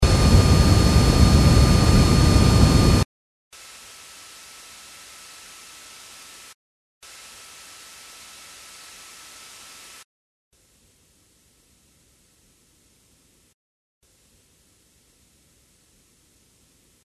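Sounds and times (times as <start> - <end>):
flyover: 0.0 - 3.0.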